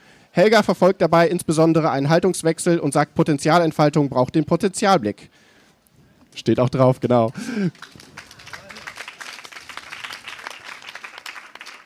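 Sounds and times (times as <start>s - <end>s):
speech: 0.4s - 5.5s, 6.4s - 8.0s
audience clapping: 7.3s - 11.8s.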